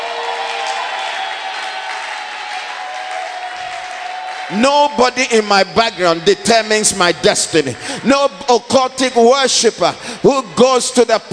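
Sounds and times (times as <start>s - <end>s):
audience clapping: 0.0s - 5.4s
speech: 4.5s - 11.3s.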